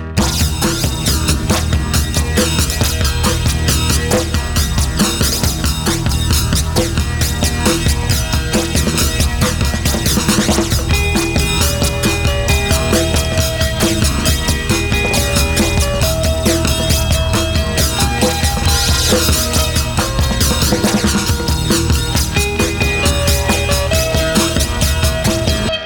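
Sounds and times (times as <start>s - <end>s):
synth arpeggio: 0.2s - 25.7s.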